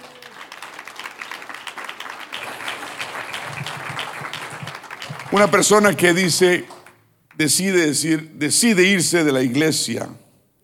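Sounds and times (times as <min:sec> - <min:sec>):
audience applause: 0:00.0 - 0:07.0
speech: 0:05.3 - 0:06.8, 0:07.4 - 0:10.3.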